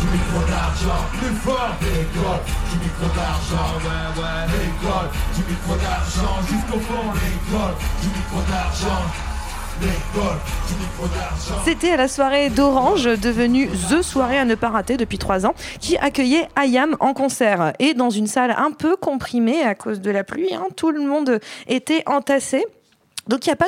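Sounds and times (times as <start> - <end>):
large crowd clapping in a steady rhythm: 0.0 - 11.8
people yelling and cheering: 0.0 - 16.3
speech: 0.4 - 23.6.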